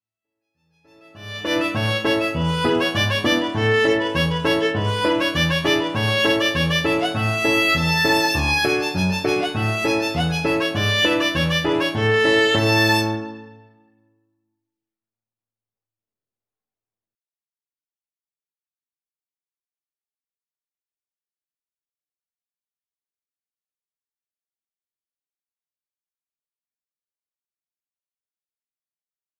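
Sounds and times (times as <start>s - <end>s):
capriccio: 0.9s - 13.8s.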